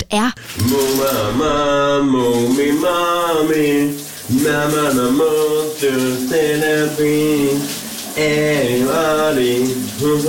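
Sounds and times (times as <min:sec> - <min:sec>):
speech: 0:00.1 - 0:10.2
shower running: 0:00.4 - 0:10.2.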